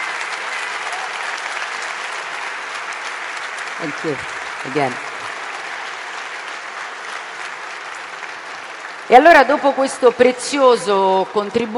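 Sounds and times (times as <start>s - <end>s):
audience applause: 0.0s - 11.7s
speech: 3.8s - 5.1s, 9.1s - 11.7s.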